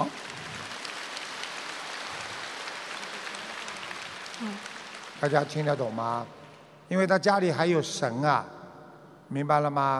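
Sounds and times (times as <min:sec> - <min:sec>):
audience applause: 0:00.0 - 0:06.7
speech: 0:04.4 - 0:08.6, 0:09.3 - 0:09.9.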